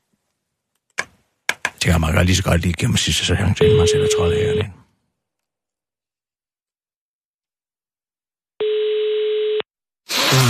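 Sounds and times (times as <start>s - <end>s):
speech: 1.8s - 4.8s
telephone ringback tone while a call goes through: 3.6s - 4.6s, 8.6s - 9.6s.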